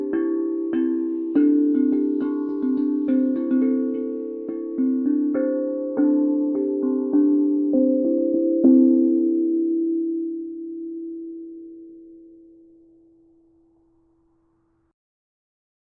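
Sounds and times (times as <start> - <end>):
small Babel drum: 0.0 - 9.5.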